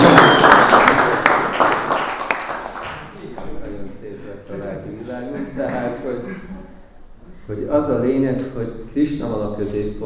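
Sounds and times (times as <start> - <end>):
audience applause: 0.0 - 3.1
speech: 7.8 - 10.0.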